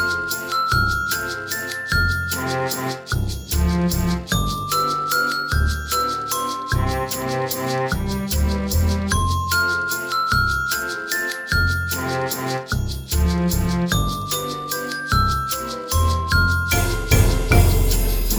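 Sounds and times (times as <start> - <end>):
chime bars: 0.0 - 13.2, 13.9 - 18.3
musical accompaniment: 0.0 - 18.3.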